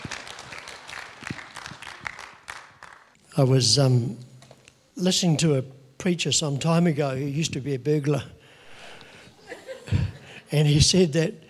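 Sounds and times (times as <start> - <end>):
audience applause: 0.0 - 3.2
speech: 3.4 - 4.3, 5.0 - 8.4, 10.5 - 11.4.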